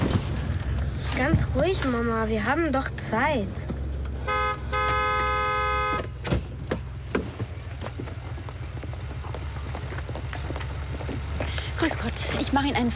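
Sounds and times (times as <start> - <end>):
idling engine rumble: 0.0 - 12.9
traffic noise: 0.0 - 12.9
speech: 1.2 - 3.8, 11.8 - 12.9
car horn: 4.2 - 6.3.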